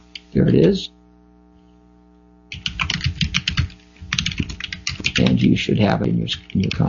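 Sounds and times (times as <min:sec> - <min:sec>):
speech: 0:00.4 - 0:01.0, 0:05.4 - 0:06.8
host typing on a computer keyboard during a live talk radio show: 0:02.5 - 0:05.5, 0:06.4 - 0:06.8.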